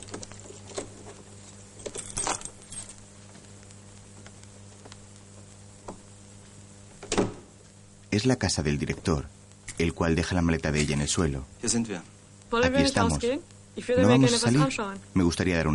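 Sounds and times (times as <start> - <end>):
low steady hum: 0.0 - 15.7
metallic clicks and rattles of keys and latch: 1.8 - 3.0
speech: 8.2 - 15.7.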